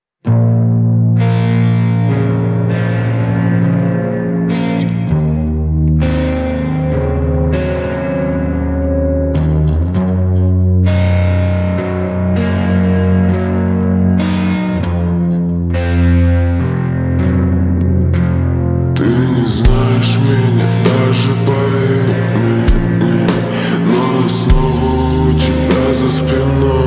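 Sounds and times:
slowed music with reverb: 0.4 - 26.8.

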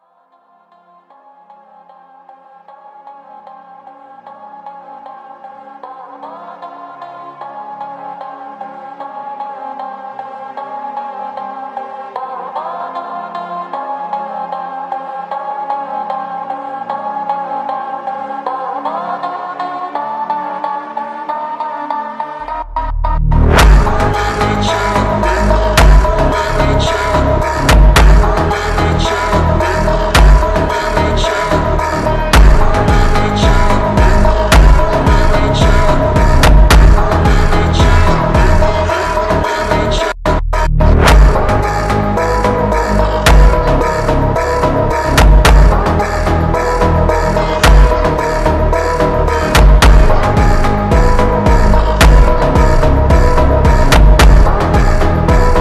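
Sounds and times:
slowed funk music: 22.5 - 55.6.

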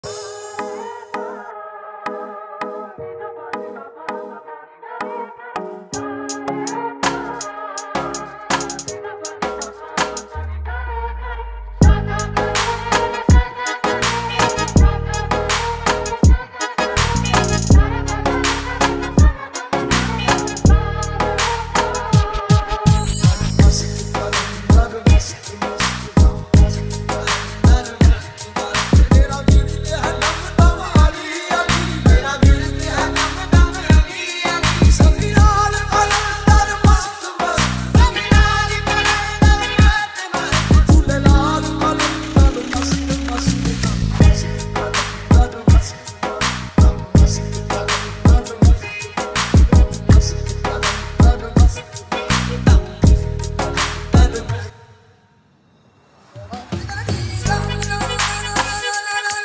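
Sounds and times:
bass boosted remix music: 8.0 - 54.6, 57.4 - 59.4.

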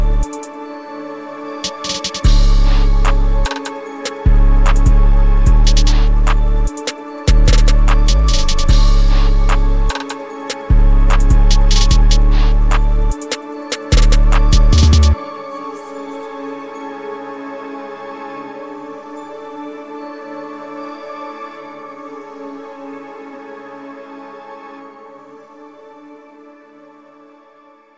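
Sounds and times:
dark plugg type beat: 0.0 - 0.5, 1.6 - 15.2.

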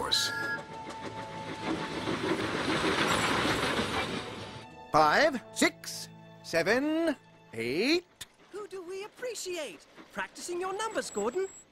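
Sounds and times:
train rumbling along rails: 0.0 - 5.0, 7.8 - 11.6
speech: 4.9 - 8.1, 9.2 - 11.6.

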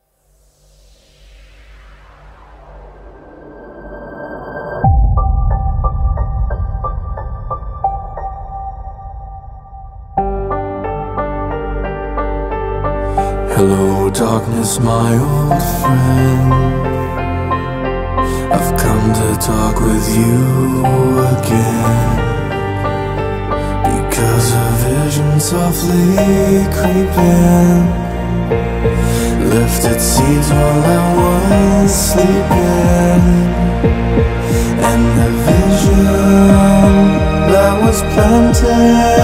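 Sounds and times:
hardstyle music: 4.8 - 39.2.

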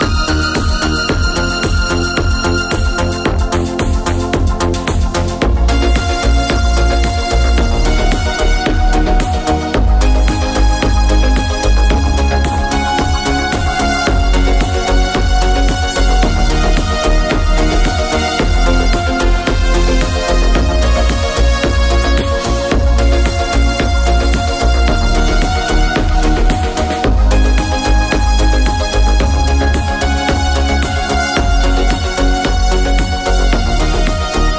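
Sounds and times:
modern beat on an arranger keyboard: 0.0 - 34.5.

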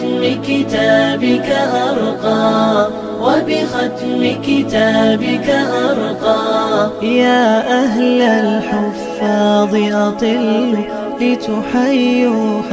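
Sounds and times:
Arabic nasheed singing: 0.0 - 12.7.

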